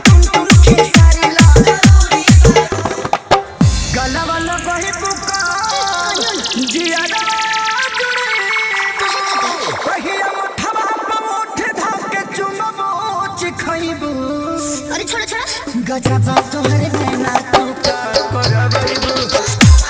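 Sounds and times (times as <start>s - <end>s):
hard dholki bass mix: 0.0s - 10.3s, 15.9s - 19.8s.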